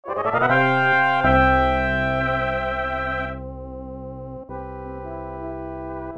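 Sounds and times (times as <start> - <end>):
boss win victory music: 0.1 - 3.4.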